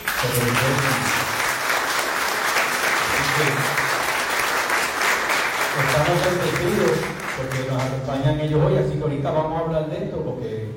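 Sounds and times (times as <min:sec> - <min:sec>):
crowd applause: 0:00.0 - 0:08.2
speech: 0:00.2 - 0:01.2, 0:03.4 - 0:03.8, 0:06.0 - 0:10.7.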